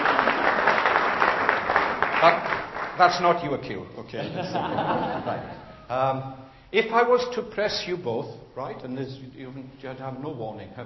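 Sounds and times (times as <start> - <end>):
audience clapping: 0.0 - 3.6
speech: 2.2 - 10.8
laughter: 4.2 - 5.9.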